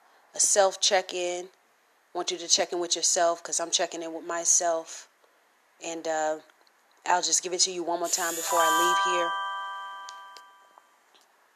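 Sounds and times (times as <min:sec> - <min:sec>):
speech: 0:00.4 - 0:05.1, 0:05.8 - 0:09.4
phone notification sound: 0:08.1 - 0:10.8.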